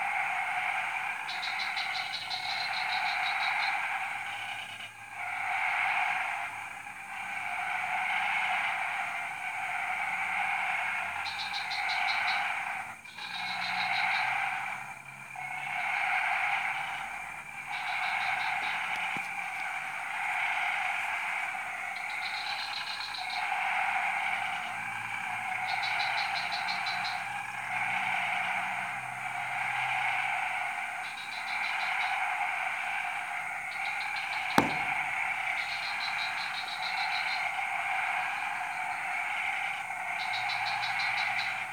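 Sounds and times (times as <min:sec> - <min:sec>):
frog chorus: 0:00.0 - 0:41.7
fast clicking pulses: 0:33.8 - 0:35.8.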